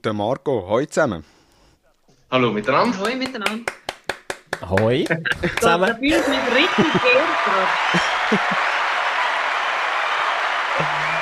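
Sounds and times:
speech: 0:00.0 - 0:01.4, 0:02.3 - 0:03.8, 0:04.6 - 0:08.7
crowd applause: 0:04.1 - 0:11.2
laughter: 0:04.8 - 0:09.5.

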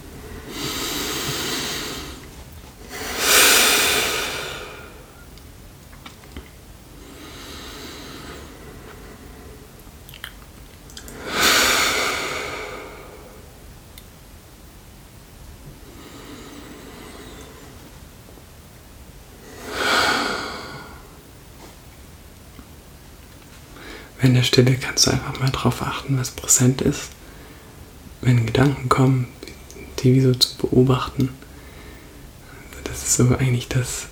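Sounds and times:
deep breaths: 0:00.0 - 0:05.3, 0:07.0 - 0:09.8, 0:11.0 - 0:13.6, 0:15.8 - 0:18.0, 0:19.4 - 0:21.3, 0:23.7 - 0:24.2, 0:27.2 - 0:27.9, 0:31.4 - 0:32.8
speech: 0:24.2 - 0:27.2, 0:28.2 - 0:29.4, 0:30.0 - 0:31.4, 0:33.2 - 0:34.0.

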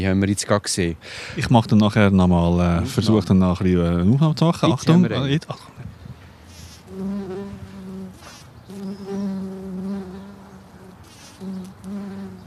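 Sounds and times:
speech: 0:00.0 - 0:05.8
wild bees buzzing around flowering plants: 0:06.7 - 0:12.4.

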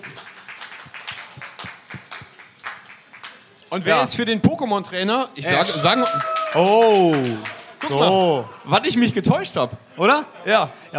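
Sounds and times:
people clapping: 0:00.0 - 0:04.0, 0:05.5 - 0:08.9
speech: 0:03.7 - 0:10.9.

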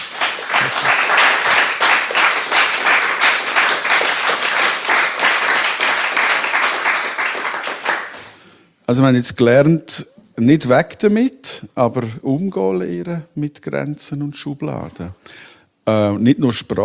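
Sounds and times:
audience applause: 0:00.0 - 0:08.2
speech: 0:08.9 - 0:16.8.

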